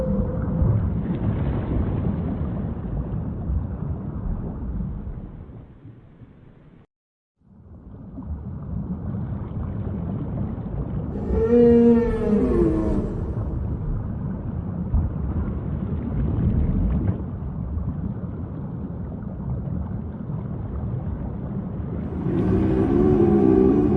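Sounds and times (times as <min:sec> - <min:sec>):
whale calls: 0:00.0 - 0:01.1, 0:11.1 - 0:14.0, 0:22.0 - 0:23.9
low steady underwater rumble: 0:00.0 - 0:06.8, 0:07.4 - 0:23.9.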